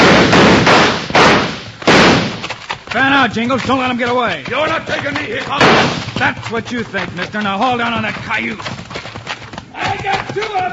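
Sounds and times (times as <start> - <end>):
gunshots in a western radio drama shootout: 0.0 - 3.7, 4.4 - 9.0
speech: 2.9 - 8.8, 10.0 - 10.7.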